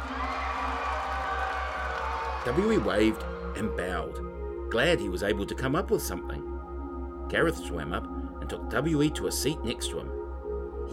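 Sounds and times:
crowd cheering: 0:00.0 - 0:03.4
speech: 0:02.4 - 0:06.5, 0:07.3 - 0:10.2.

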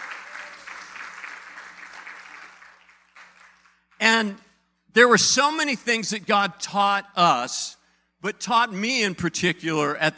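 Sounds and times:
audience applause: 0:00.0 - 0:03.8
speech: 0:04.2 - 0:10.1.

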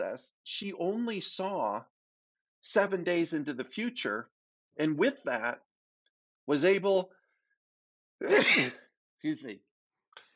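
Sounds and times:
speech: 0:00.2 - 0:01.9, 0:02.6 - 0:05.7, 0:06.5 - 0:07.2, 0:08.2 - 0:09.7
person sneezing: 0:08.2 - 0:08.9.

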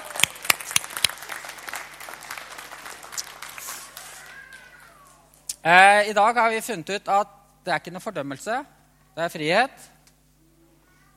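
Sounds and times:
audience clapping: 0:00.0 - 0:05.2
speech: 0:05.6 - 0:09.9.

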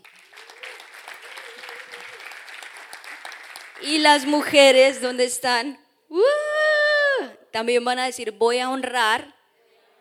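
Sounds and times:
audience applause: 0:00.0 - 0:04.6
speech: 0:03.8 - 0:06.3, 0:07.6 - 0:09.4.

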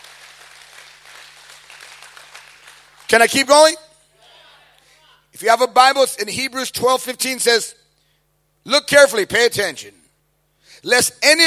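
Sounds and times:
audience clapping: 0:00.0 - 0:03.4
speech: 0:03.1 - 0:03.8, 0:05.4 - 0:07.8, 0:08.6 - 0:10.0, 0:10.7 - 0:11.4.

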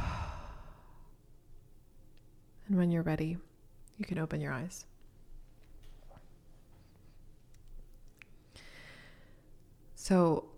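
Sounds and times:
slow exhale through the mouth during guided meditation: 0:00.0 - 0:01.1, 0:08.5 - 0:09.4
speech: 0:02.7 - 0:04.9, 0:10.0 - 0:10.5.

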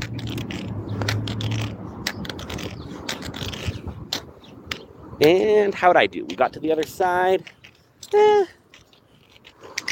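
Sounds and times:
road traffic rumble: 0:00.0 - 0:09.9
speech: 0:05.2 - 0:08.6.

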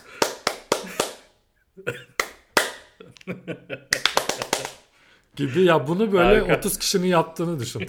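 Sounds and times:
arrhythmic hand clapping: 0:00.0 - 0:01.3, 0:02.1 - 0:03.0, 0:03.9 - 0:04.9
speech: 0:01.8 - 0:02.1, 0:03.2 - 0:04.2, 0:05.4 - 0:07.8.

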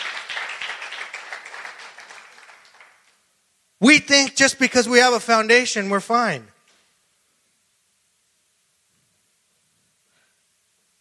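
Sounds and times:
audience clapping: 0:00.0 - 0:03.3
speech: 0:03.8 - 0:06.5.

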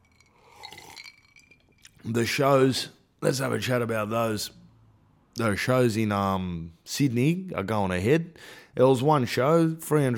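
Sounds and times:
pouring scotch into a glass: 0:00.0 - 0:02.0
speech: 0:02.0 - 0:04.6, 0:05.4 - 0:10.1.

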